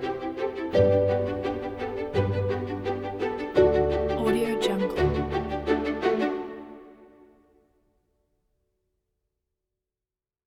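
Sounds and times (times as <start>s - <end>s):
motivational epic cinematic orchestra music: 0.0s - 7.2s.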